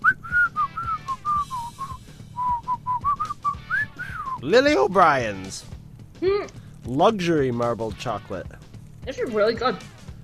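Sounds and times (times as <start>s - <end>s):
person whistling a bright bouncy soap-commercial jingle: 0.0s - 4.5s
speech: 4.4s - 9.9s.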